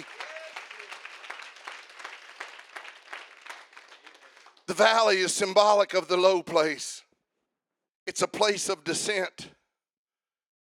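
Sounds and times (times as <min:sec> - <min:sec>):
audience clapping hands: 0:00.0 - 0:06.3
speech: 0:04.7 - 0:07.0, 0:08.2 - 0:09.5.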